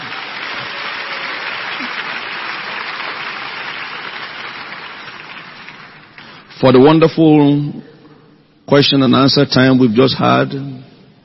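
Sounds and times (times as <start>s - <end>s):
audience applause: 0.0s - 6.4s
speech: 6.6s - 7.9s, 8.7s - 10.9s.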